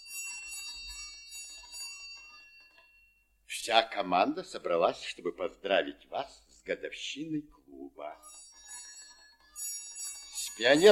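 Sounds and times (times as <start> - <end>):
bell ringing as a general call signal: 0.0 - 3.4, 8.1 - 10.8
speech: 3.6 - 8.4, 10.6 - 10.8.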